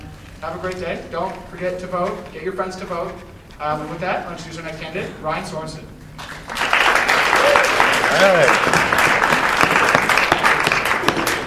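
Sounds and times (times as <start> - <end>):
speech: 0.4 - 6.0, 8.1 - 8.8
audience clapping: 6.2 - 11.4.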